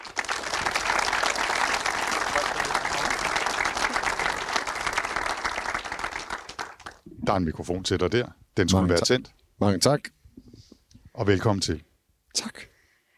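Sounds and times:
audience applause welcoming a physicist onto the stage at a live talk: 0.0 - 7.0
speech: 7.3 - 10.2, 11.2 - 12.5.

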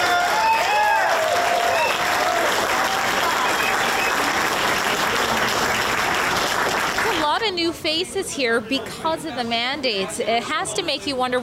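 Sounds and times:
whoops and whistles: 0.0 - 2.3, 3.2 - 4.4
large crowd clapping: 0.0 - 7.4
speech: 7.8 - 11.4.

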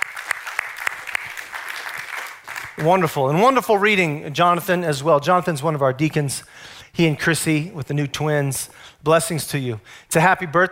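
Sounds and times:
audience applause: 0.0 - 3.1
speech: 2.8 - 10.7.

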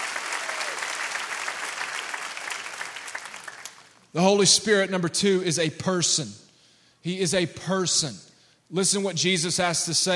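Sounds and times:
congregation clapping hands: 0.0 - 4.1
speech: 4.1 - 6.4, 7.0 - 10.1.

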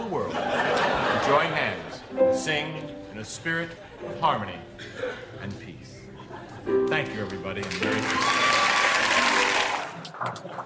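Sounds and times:
laughter: 0.1 - 2.1, 6.2 - 7.3, 10.0 - 10.6
speech: 2.4 - 6.0, 6.6 - 8.7, 10.2 - 10.6
clapping: 7.6 - 10.6.

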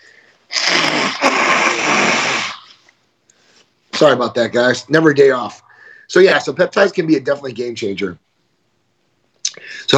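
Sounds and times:
person blowing nose: 0.5 - 2.8
speech: 4.0 - 8.2, 9.6 - 9.9.

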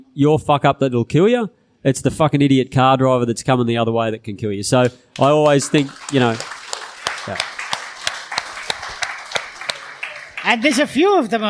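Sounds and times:
speech: 0.2 - 6.6, 7.2 - 7.5, 10.5 - 11.4
audience clapping: 4.8 - 11.4.

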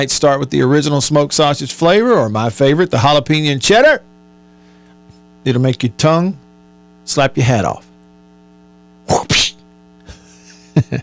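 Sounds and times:
speech: 0.0 - 4.1, 5.4 - 6.4, 7.1 - 7.9
low electrical hum: 0.0 - 11.0
loud two-part sneeze: 9.1 - 9.7.

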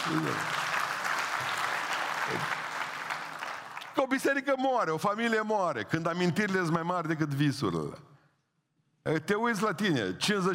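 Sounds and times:
audience applause: 0.0 - 4.0
speech: 0.1 - 0.6, 2.3 - 2.6, 4.0 - 8.1, 9.0 - 10.5.

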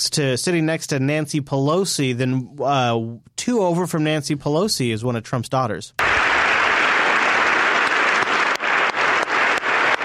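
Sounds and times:
speech: 0.0 - 6.2
crowd applauding: 6.0 - 10.0
loud sharp claps: 6.0 - 10.0.

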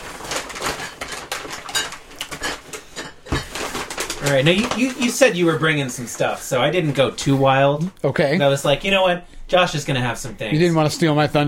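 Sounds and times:
rummaging through a bag of drinks: 0.0 - 7.6
speech: 4.2 - 11.4.

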